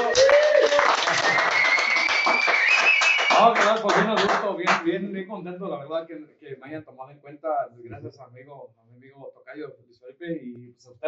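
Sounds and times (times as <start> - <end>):
thin tonal whistles or cheers: 0.0 - 3.7
applause from a group: 0.0 - 4.8
speech: 3.9 - 11.0.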